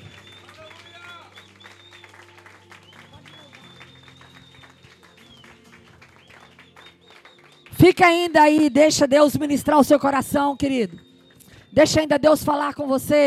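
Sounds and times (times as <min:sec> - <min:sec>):
audience applauding: 0:00.0 - 0:08.8
organ-like music tones: 0:00.0 - 0:12.9
speech: 0:07.8 - 0:11.0, 0:11.8 - 0:13.2.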